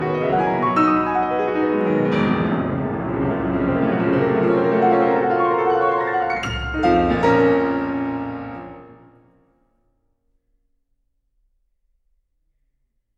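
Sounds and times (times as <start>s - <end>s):
fast classical prelude in B flat minor: 0.0s - 9.3s.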